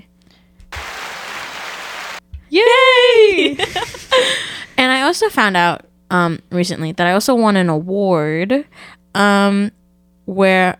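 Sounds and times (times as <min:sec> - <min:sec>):
clapping: 0:00.7 - 0:02.2
speech: 0:02.5 - 0:04.4, 0:05.1 - 0:10.7
laughter: 0:03.1 - 0:04.7.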